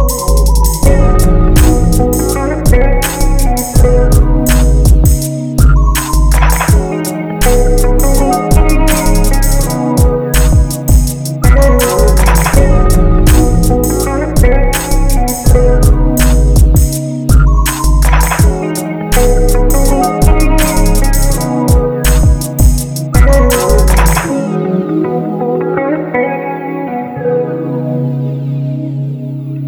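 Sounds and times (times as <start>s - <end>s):
mellow pop music: 0.0s - 29.6s.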